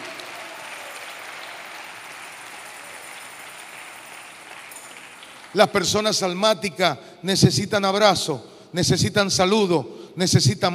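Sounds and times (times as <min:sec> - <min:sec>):
audience applause: 0:00.0 - 0:05.6
speech: 0:05.5 - 0:10.7.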